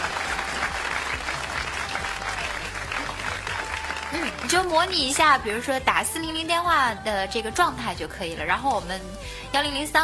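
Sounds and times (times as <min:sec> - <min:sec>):
audience applause: 0:00.0 - 0:05.2
speech: 0:04.1 - 0:10.0.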